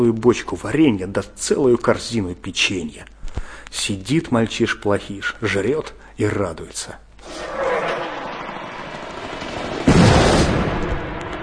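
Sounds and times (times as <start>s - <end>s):
speech: 0.0s - 7.6s
explosion of ignited boxes: 7.2s - 11.4s.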